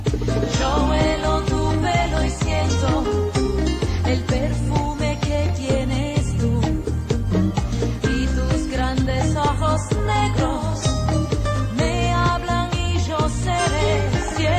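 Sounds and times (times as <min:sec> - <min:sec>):
bachata ringtone: 0:00.1 - 0:12.3, 0:13.3 - 0:14.5.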